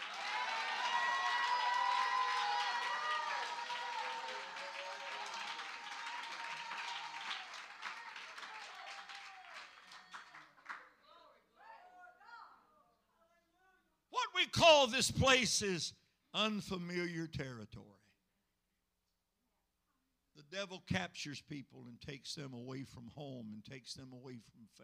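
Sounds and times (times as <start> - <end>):
crowd cheering and shouting: 0.0 - 10.8, 14.2 - 15.8
crowd clapping: 0.0 - 11.0
speech: 14.6 - 17.9, 20.5 - 24.8.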